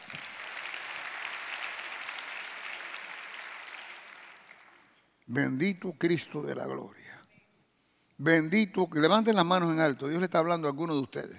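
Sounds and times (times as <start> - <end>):
audience applause: 0.0 - 4.8
speech: 5.3 - 7.2, 8.2 - 11.3.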